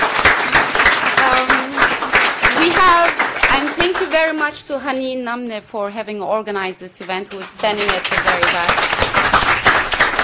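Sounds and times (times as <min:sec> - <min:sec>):
audience applause for the speakers at a talk event: 0:00.0 - 0:04.4, 0:07.4 - 0:10.2
speech: 0:04.2 - 0:09.4.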